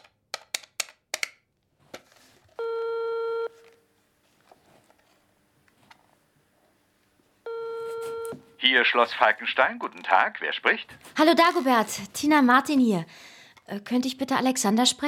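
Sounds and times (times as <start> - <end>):
telephone line ringing: 2.6 - 3.6, 7.5 - 8.6
phone number dialing: 2.6 - 3.8, 7.5 - 8.6
speech: 8.6 - 15.0.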